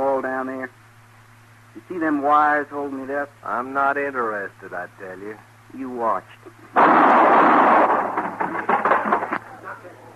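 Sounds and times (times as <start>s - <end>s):
speech: 1.8s - 8.7s
gunshots: 6.8s - 9.2s.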